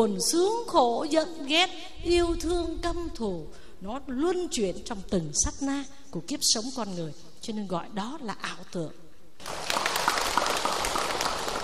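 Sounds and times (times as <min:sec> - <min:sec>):
speech: 0:00.0 - 0:09.7
audience clapping at a Buddhist monk's dharma talk: 0:09.4 - 0:11.6.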